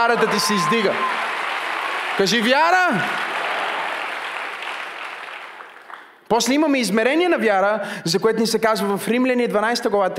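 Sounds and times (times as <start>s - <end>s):
speech: 0.0s - 1.2s, 2.2s - 3.3s, 6.3s - 10.1s
congregation applauding during a church service: 0.0s - 6.3s.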